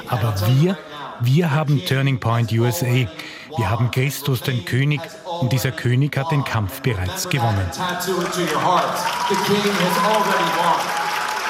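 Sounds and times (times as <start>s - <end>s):
speech: 0.1s - 11.0s
applause: 7.2s - 11.4s
audience cheering: 7.5s - 11.4s.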